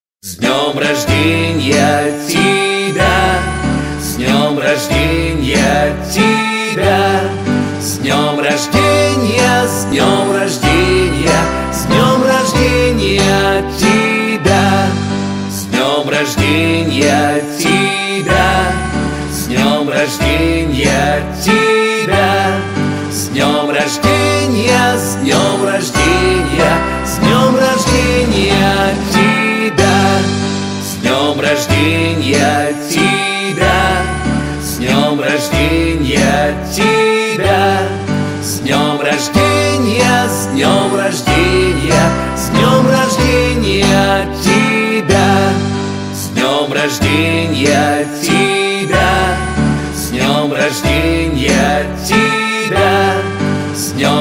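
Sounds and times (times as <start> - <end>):
birthday song in Russian: 0.2 - 54.1.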